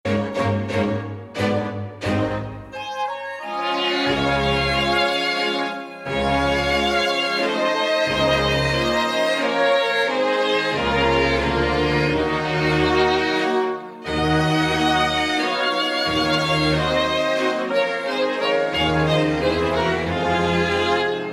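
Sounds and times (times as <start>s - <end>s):
waltz music: 0.1s - 21.3s.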